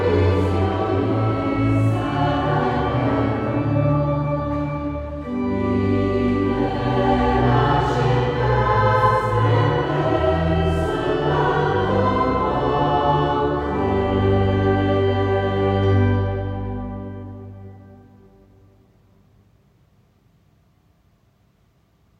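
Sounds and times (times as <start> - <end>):
choir of three voices singing: 0.0 - 18.5
organ: 0.0 - 18.8.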